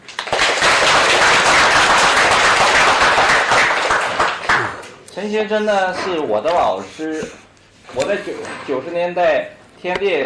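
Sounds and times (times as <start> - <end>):
audience applause: 0.0 - 5.0
speech: 5.2 - 10.2.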